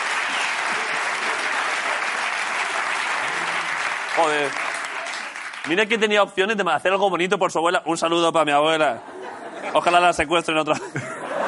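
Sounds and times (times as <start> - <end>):
audience applause: 0.0 - 6.1
speech: 4.2 - 4.7, 5.6 - 9.1, 9.7 - 11.2
laughter: 8.8 - 11.4.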